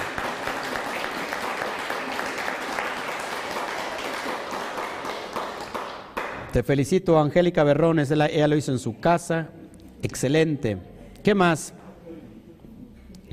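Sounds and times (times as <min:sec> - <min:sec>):
audience applause: 0:00.0 - 0:06.4
speech: 0:06.5 - 0:11.8.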